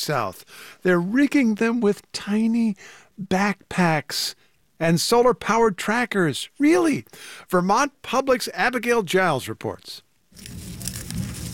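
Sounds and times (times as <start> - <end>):
speech: 0.0 - 10.7
monarch butterfly rustling its legs: 10.3 - 11.5.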